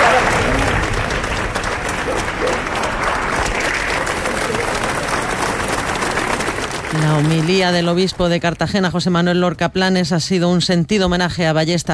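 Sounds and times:
large crowd applauding outdoors at a funeral procession: 0.0 - 8.9
speech: 7.2 - 11.9.

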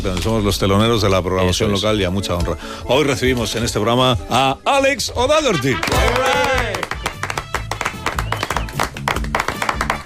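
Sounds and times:
speech: 0.0 - 6.7
hand clapping: 5.8 - 10.0.

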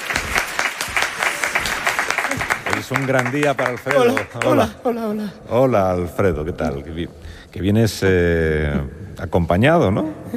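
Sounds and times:
audience applause: 0.0 - 4.8
speech: 2.9 - 10.3.

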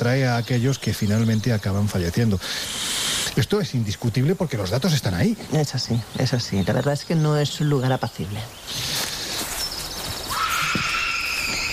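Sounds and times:
speech: 0.0 - 9.0
distant high scream: 10.3 - 11.7.

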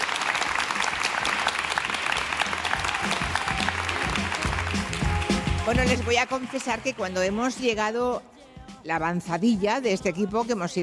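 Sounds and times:
audience applauding: 0.0 - 7.6
speech: 5.7 - 10.8.

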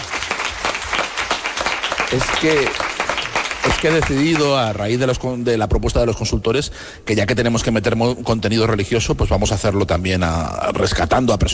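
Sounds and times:
audience applause: 0.0 - 4.8
speech: 2.1 - 2.9, 3.6 - 11.5.

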